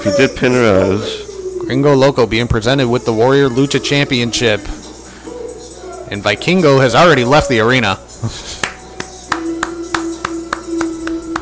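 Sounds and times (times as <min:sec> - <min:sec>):
speech: 0:00.0 - 0:04.8, 0:06.1 - 0:08.6
person clapping hands during a wrestling event: 0:08.5 - 0:11.4.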